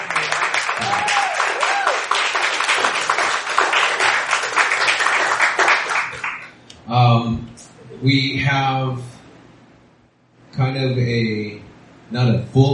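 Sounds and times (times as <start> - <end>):
audience applause: 0.0 - 6.5
speech: 8.0 - 9.1, 10.6 - 12.7.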